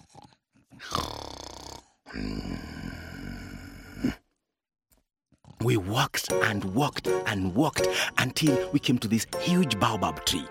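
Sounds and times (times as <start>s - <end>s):
loud snoring: 0.1s - 4.2s
speech: 5.6s - 10.4s.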